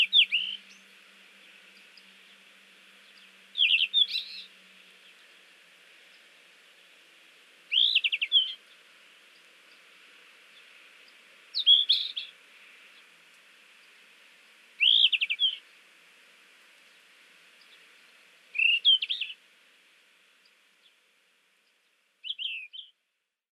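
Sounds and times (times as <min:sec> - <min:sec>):
Yellow-rumped Flycatcher calling in Hyogo: 0:00.0 - 0:05.5, 0:07.7 - 0:09.8, 0:10.5 - 0:13.1, 0:14.8 - 0:15.7, 0:18.5 - 0:19.4, 0:22.2 - 0:23.0.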